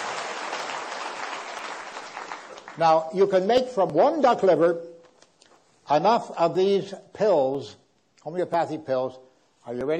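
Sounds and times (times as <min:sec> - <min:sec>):
audience applause for a gentleman from the crowd: 0:00.0 - 0:02.8
speech: 0:02.8 - 0:04.9, 0:05.9 - 0:09.9.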